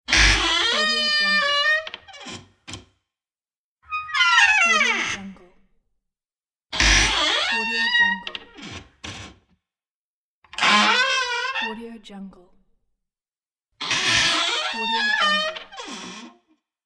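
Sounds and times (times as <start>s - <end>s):
creaky old door: 0.1s - 3.0s, 3.9s - 5.5s, 6.7s - 9.5s, 10.5s - 11.9s, 13.8s - 16.5s.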